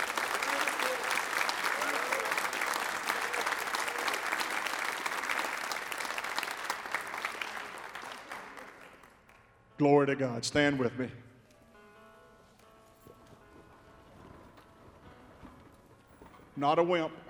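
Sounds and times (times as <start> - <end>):
audience clapping hands: 0.0 - 9.5
speech: 9.8 - 11.2, 16.6 - 17.2.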